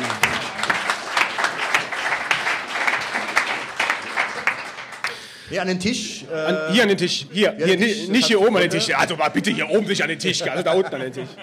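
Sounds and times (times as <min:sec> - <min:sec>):
crowd applause: 0:00.0 - 0:05.4
speech: 0:05.5 - 0:11.4
laughter: 0:07.6 - 0:11.4.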